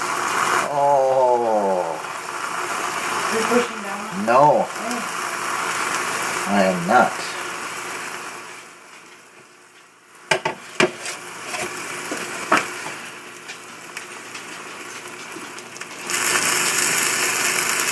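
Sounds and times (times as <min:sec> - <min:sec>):
cheese sizzling as it melts in a quesadilla maker: 0:00.0 - 0:17.8
speech: 0:03.5 - 0:04.9, 0:06.5 - 0:07.3.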